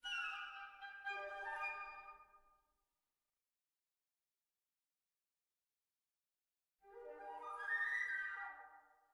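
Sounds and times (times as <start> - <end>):
interactive music: 0.0 - 3.2, 6.8 - 9.1.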